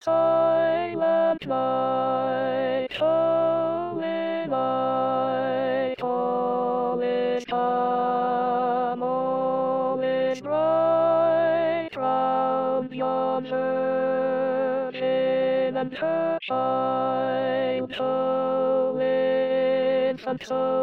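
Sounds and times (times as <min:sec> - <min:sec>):
alto voices singing: 0:00.0 - 0:20.8.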